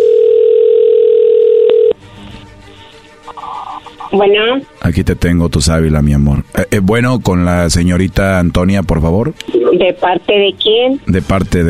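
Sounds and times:
telephone dial tone: 0.0s - 2.0s
speech: 4.2s - 11.6s.

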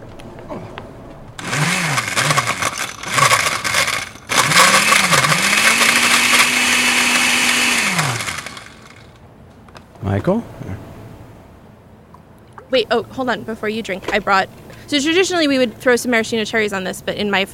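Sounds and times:
blender blending a drink: 1.4s - 9.2s
speech: 10.2s - 10.7s, 12.7s - 17.5s.

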